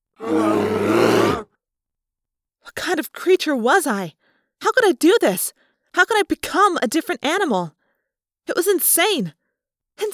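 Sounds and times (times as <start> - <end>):
grizzly bear growling: 0.2 - 1.4
speech: 3.0 - 7.8, 8.5 - 9.4.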